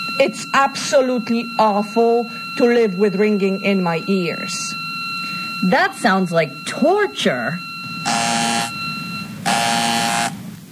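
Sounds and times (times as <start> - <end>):
low hum: 0.0 - 10.6
speech: 0.2 - 4.8, 5.6 - 8.2
harsh electric door buzzer: 8.0 - 10.4.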